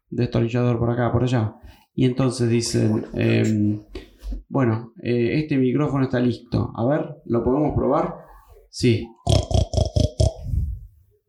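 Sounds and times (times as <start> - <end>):
speech: 0.1 - 9.2
voice imitating pig grunting: 9.1 - 10.8.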